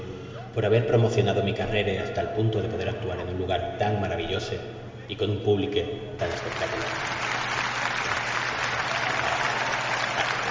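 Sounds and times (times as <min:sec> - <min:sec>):
speech: 0:00.6 - 0:07.2
audience applause: 0:06.2 - 0:10.4.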